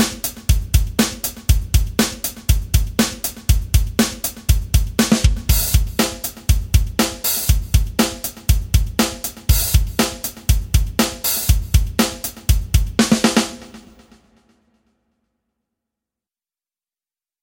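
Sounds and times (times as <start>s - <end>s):
rock drum kit: 0.0s - 14.4s.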